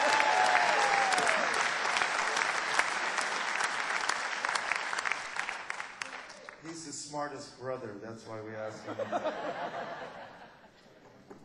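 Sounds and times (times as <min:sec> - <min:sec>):
audience applause: 0:00.0 - 0:06.7
speech: 0:07.2 - 0:10.3
laughter: 0:08.8 - 0:10.9.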